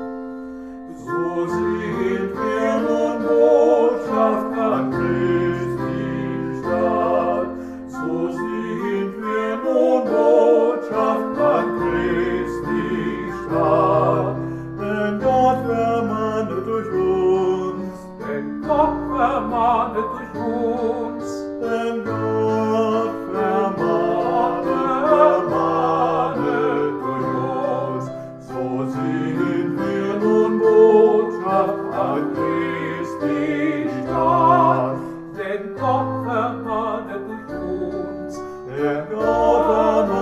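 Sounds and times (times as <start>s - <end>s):
duet music: 1.0s - 40.2s.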